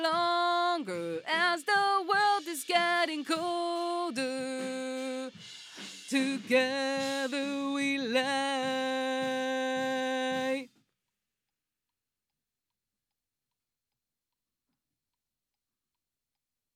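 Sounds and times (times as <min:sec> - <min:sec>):
vocals: 0:00.0 - 0:10.8.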